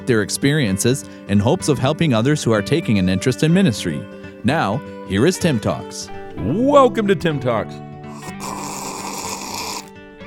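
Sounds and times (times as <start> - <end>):
speech: 0.1 - 8.6
loud slurp of a drink: 8.1 - 10.0.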